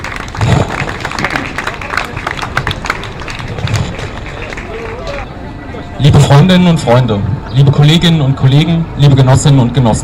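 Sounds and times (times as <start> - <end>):
crowd clapping: 0.0 - 5.4
murmur of voices: 0.4 - 10.0
speech: 6.3 - 10.0.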